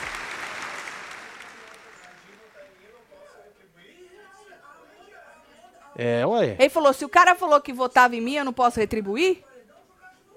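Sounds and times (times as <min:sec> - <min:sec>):
applause: 0:00.0 - 0:03.4
speech: 0:06.0 - 0:09.5.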